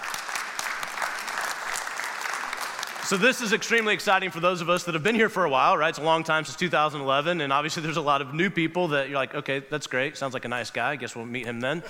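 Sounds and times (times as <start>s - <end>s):
audience clapping: 0.0s - 4.3s
speech: 3.1s - 11.8s.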